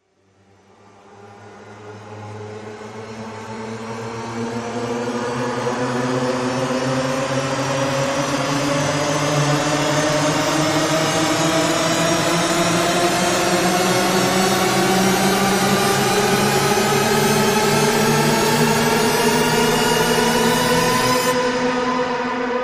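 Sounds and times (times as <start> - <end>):
long rising sound effect: 1.6 - 22.5.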